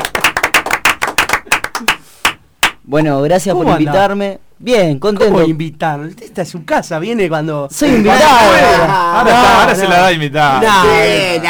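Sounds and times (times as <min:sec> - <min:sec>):
small group clapping to welcome a radio guest: 0:00.0 - 0:02.8
speech: 0:02.9 - 0:11.4.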